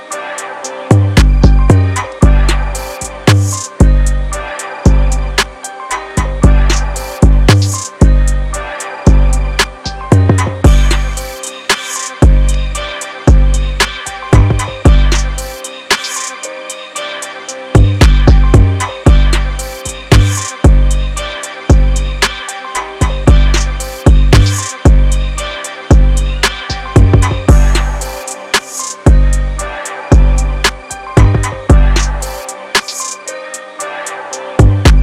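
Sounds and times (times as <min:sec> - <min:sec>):
drum kit: 0:00.9 - 0:04.2, 0:04.9 - 0:08.4, 0:09.1 - 0:12.6, 0:13.3 - 0:16.4, 0:17.8 - 0:21.0, 0:21.7 - 0:25.2, 0:25.9 - 0:29.4, 0:30.1 - 0:33.2.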